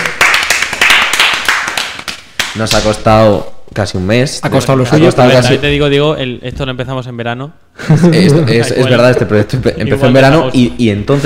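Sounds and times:
crowd clapping hands: 0.0s - 2.9s
speech: 2.6s - 11.2s
laughter: 7.8s - 9.8s.

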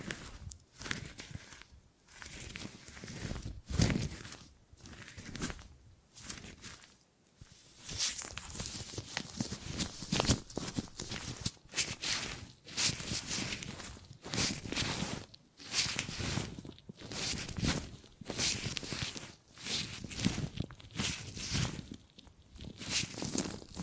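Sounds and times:
gripping and grabbing rustling handling noise: 0.0s - 23.8s.

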